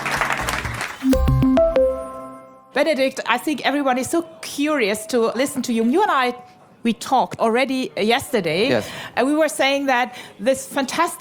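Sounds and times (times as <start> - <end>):
crowd applauding: 0.0 - 1.6
bright sustained musical tones: 1.0 - 2.8
speech: 2.8 - 11.1.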